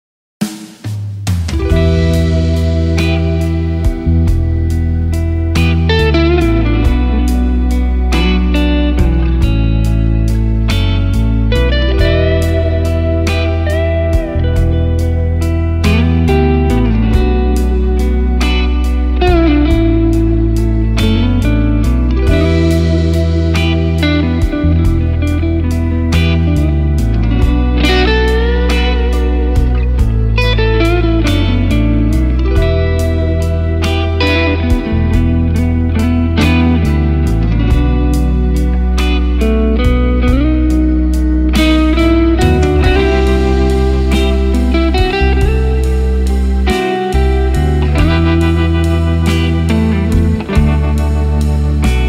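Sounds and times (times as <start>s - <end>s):
blues music: 0.4s - 52.0s.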